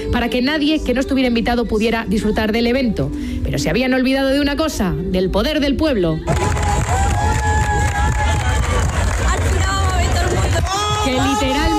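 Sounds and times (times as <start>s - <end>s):
speech: 0.2s - 6.6s
crowd cheering and applauding: 6.3s - 11.7s.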